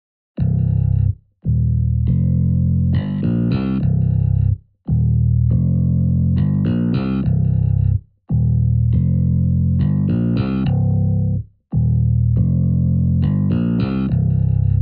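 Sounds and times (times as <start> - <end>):
funky slap bass sample bass line: 0.4 - 14.7.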